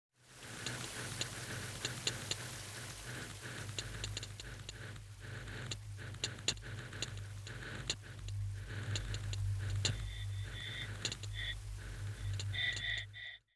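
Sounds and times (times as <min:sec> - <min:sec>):
fire: 0:00.3 - 0:13.1
time clicks: 0:00.5 - 0:13.4.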